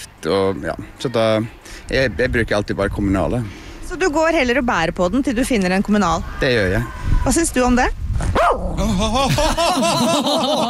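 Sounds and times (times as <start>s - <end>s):
speech: 0.2s - 10.6s
dog whining and yelping barks: 8.4s - 8.8s
laughter: 8.8s - 10.6s.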